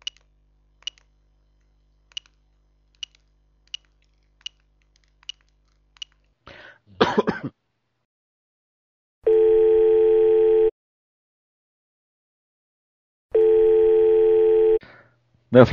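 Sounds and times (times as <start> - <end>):
throat clearing: 6.9 - 7.6
ringback tones on an outgoing phone call: 9.2 - 10.7, 13.3 - 14.8.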